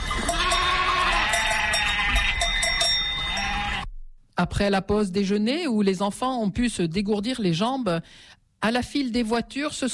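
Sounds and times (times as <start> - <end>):
sheep and ewes bleating: 0.1 - 3.9
speech: 4.4 - 9.9.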